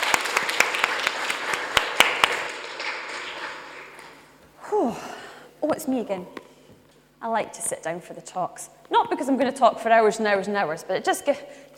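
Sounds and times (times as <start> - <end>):
audience applause: 0.0 - 4.3
speech: 5.8 - 6.4, 7.2 - 11.7.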